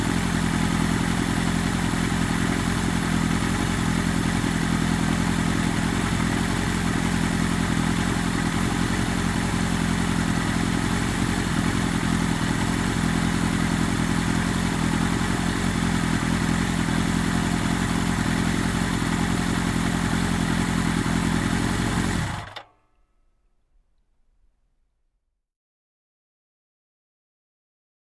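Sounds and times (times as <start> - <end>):
motorcycle engine idling: 0.0 - 22.8.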